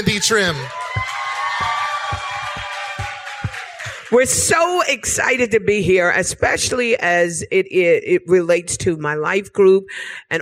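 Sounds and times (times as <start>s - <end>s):
speech: 0.0s - 0.8s, 4.1s - 10.4s
audience applause: 0.0s - 4.5s.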